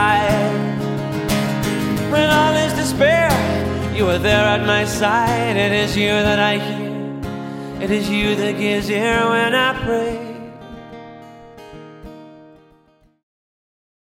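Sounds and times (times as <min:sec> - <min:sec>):
vocals: 0:00.0 - 0:11.0.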